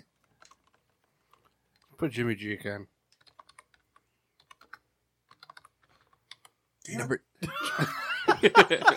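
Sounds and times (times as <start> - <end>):
fingers typing on a computer keyboard: 0.2 - 2.0, 3.1 - 6.6
speech: 2.0 - 3.0, 6.9 - 8.9
laughter: 7.4 - 8.9.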